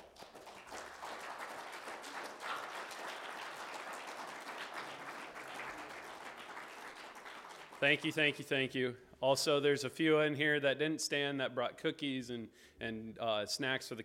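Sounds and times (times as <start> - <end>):
crowd applauding with many hands clapping: 0.0 - 8.4
speech: 7.8 - 14.0.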